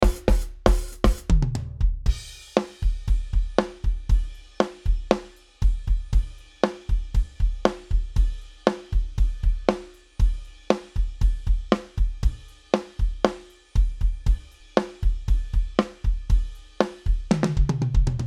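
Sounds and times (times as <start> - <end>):
drum: 0.0 - 18.2.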